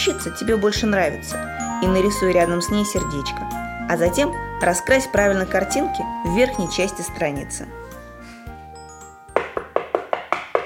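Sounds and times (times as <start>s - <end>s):
speech: 0.1s - 7.8s
knocking on a door: 9.4s - 10.6s.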